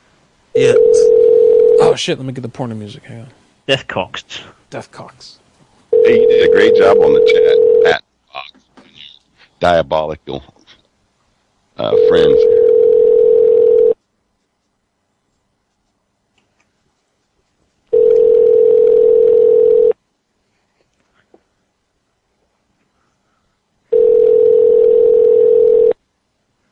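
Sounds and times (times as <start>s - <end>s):
speech: 0.6s - 1.3s, 1.9s - 5.4s, 6.0s - 8.0s, 9.6s - 10.6s, 11.8s - 12.6s
dial tone of a Skype phone call: 0.6s - 1.9s, 5.9s - 7.9s, 11.9s - 14.0s, 17.9s - 20.0s, 23.9s - 26.0s.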